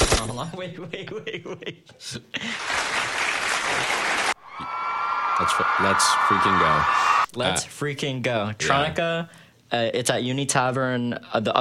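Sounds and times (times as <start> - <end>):
speech: 0.4 - 2.9, 5.4 - 11.5
applause sound effect: 2.5 - 7.3.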